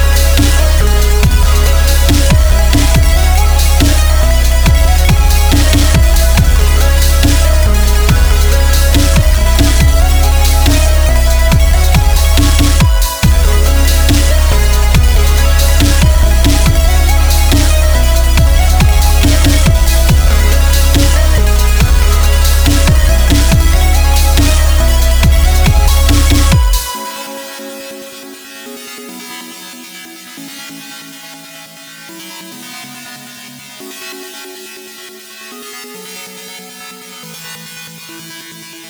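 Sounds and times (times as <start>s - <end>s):
wall of sawtooth synth waves: 0.0s - 28.8s.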